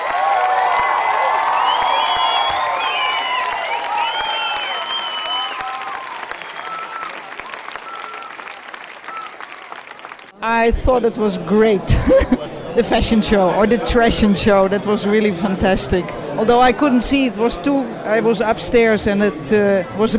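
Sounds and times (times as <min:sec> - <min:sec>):
audience applause: 0:00.0 - 0:10.4
speech: 0:10.6 - 0:20.1
laughter: 0:11.8 - 0:12.7.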